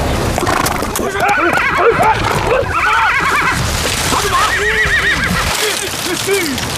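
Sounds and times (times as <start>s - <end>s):
horse hooves clopping: 0.3s - 6.7s
Chinese Zhangbei horse neighing: 0.4s - 5.8s.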